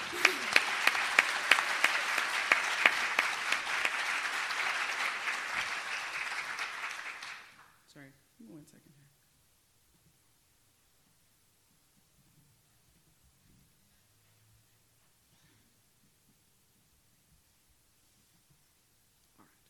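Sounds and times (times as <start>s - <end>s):
round of applause: 0.0s - 7.9s.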